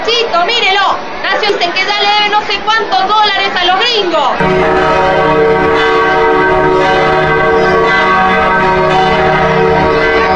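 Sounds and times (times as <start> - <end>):
speech: 0.4 - 5.5
old cathedral church bells striking the hour: 4.4 - 10.3.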